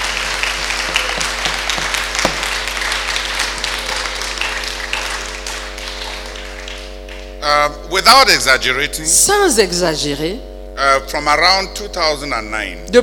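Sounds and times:
audience applauding at a bilingual church service in acclaim of the Lord: 0.0s - 7.4s
low hum: 0.0s - 13.0s
speech: 7.6s - 13.0s.

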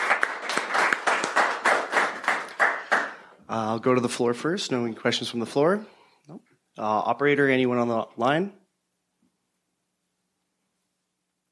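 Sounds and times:
audience round of applause: 0.0s - 3.3s
speech: 3.6s - 8.6s.

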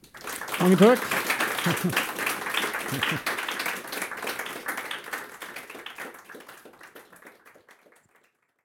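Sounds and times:
audience applause: 0.0s - 8.5s
speech: 0.6s - 2.1s, 2.9s - 3.3s
laughter: 0.6s - 3.3s
voices calling out: 1.6s - 2.0s, 2.9s - 3.2s.

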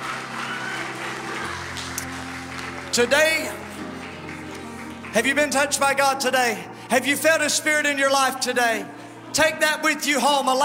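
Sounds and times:
audience clapping hands in praise: 0.0s - 6.2s
speech: 3.0s - 3.6s, 5.2s - 10.6s.

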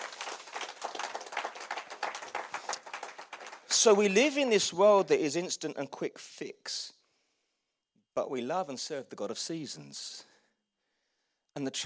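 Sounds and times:
audience applause: 0.0s - 3.9s
speech: 3.7s - 7.0s, 8.2s - 10.3s, 11.6s - 11.8s.

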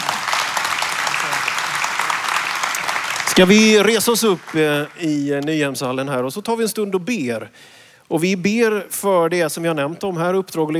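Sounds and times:
audience applause in a hall: 0.0s - 5.4s
speech: 3.4s - 10.7s.

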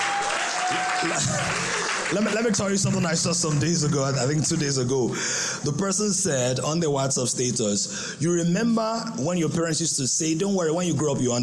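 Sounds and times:
audience clapping: 0.0s - 5.0s
speech: 0.7s - 11.4s.

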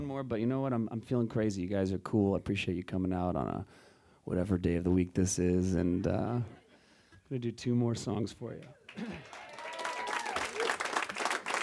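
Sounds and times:
speech: 0.1s - 6.6s, 7.3s - 9.4s
audience clapping: 8.6s - 11.6s.

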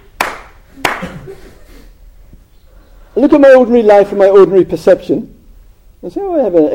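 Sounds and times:
hand clap: 0.0s - 1.2s
speech: 3.2s - 5.3s, 6.0s - 6.7s.

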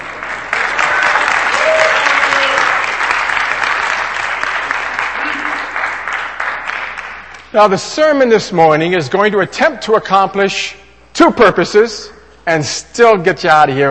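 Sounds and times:
audience applause: 0.0s - 7.4s
speech: 7.6s - 13.8s.

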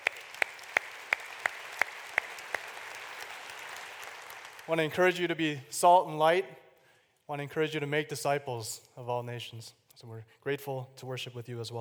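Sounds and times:
audience applause: 0.0s - 5.4s
speech: 4.7s - 6.6s, 7.3s - 11.7s.

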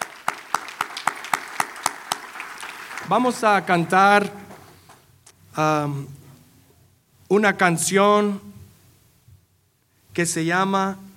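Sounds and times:
applause: 0.0s - 4.4s
speech: 3.1s - 4.4s, 5.6s - 6.2s, 7.3s - 8.5s, 10.2s - 11.1s.

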